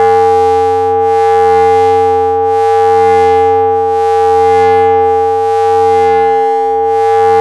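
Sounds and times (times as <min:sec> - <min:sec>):
raw VCS synthesizer waveforms: 0:00.0 - 0:07.3.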